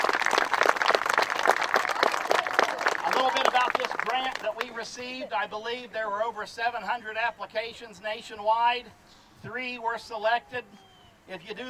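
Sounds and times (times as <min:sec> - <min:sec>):
audience applause: 0:00.0 - 0:04.6
speech: 0:04.0 - 0:11.6.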